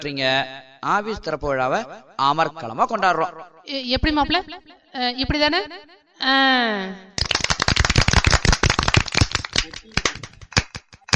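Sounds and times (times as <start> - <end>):
speech: 0.0 - 7.2
hands clapping after ribbon cutting: 7.2 - 11.1.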